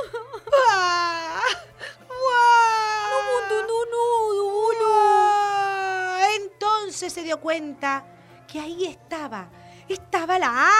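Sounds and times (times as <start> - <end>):
child crying in a Spanish children's story: 0.0 - 4.1, 4.8 - 6.2
speech: 7.1 - 10.7.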